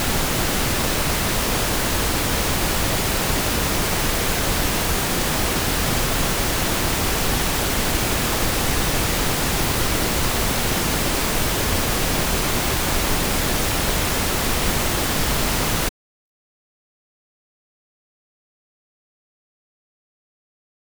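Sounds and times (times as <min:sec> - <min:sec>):
pink noise in right channel: 0:00.0 - 0:15.9.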